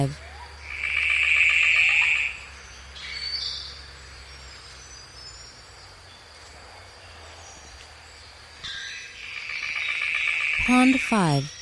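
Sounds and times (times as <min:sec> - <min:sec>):
speech: 0:00.0 - 0:00.2, 0:10.7 - 0:11.6
Golden bowerbird buzzy rattling call: 0:00.6 - 0:03.3, 0:08.6 - 0:11.6.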